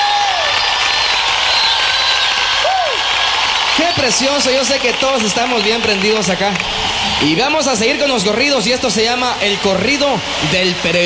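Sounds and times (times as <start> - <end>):
loud steady applause from a large audience: 0.0 - 11.0
whistles sliding up and down: 0.1 - 6.3
speech: 3.9 - 11.0.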